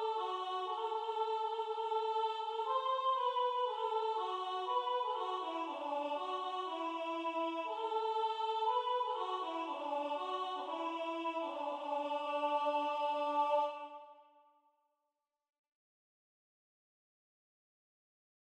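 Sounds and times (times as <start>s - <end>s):
soprano singing a religious folk song: 0.0s - 14.1s.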